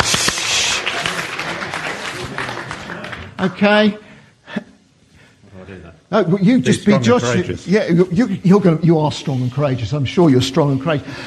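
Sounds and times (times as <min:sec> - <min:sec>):
round of applause: 0:00.0 - 0:03.5
speech: 0:03.4 - 0:04.7, 0:06.1 - 0:11.2.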